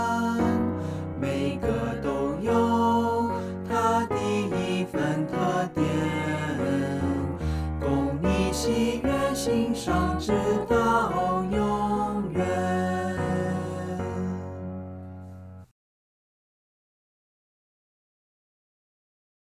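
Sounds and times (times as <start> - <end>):
vocals: 0.0 - 15.0.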